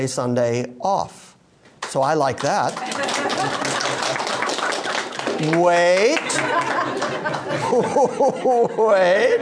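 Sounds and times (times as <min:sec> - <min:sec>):
speech: 0:00.0 - 0:01.2, 0:01.9 - 0:03.8, 0:05.4 - 0:09.3
church congregation applauding a guest preacher at a Sunday service: 0:01.8 - 0:07.6
laughter: 0:02.8 - 0:09.3.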